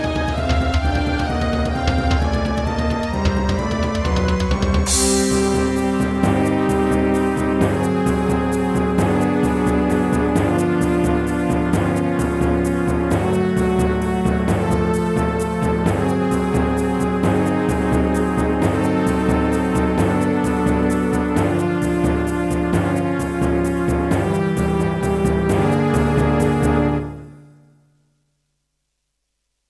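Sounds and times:
Roland PMA-5 wavetable synthesizer: 0.0s - 27.4s.

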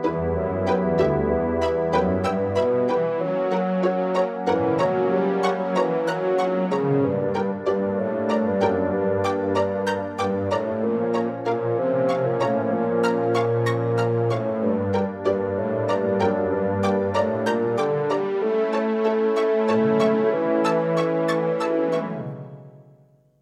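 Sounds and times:
synthesizer music in GS mode: 0.0s - 22.7s.

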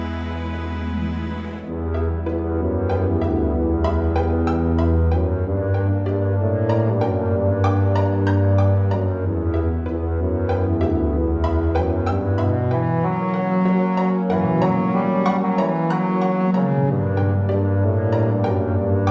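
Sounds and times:
Roland JV-1080 synthesizer music: 0.0s - 19.1s.

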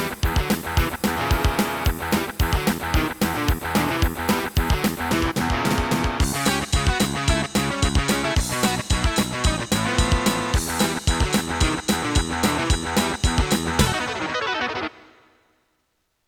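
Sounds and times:
Roland CM-500 sound module: 0.0s - 15.0s.

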